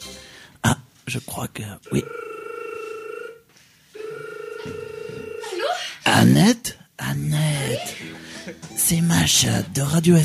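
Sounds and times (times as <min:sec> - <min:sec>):
speech: 0:01.1 - 0:02.2, 0:06.1 - 0:10.2
telephone ringback tone after dialing: 0:01.9 - 0:03.4, 0:04.0 - 0:05.7.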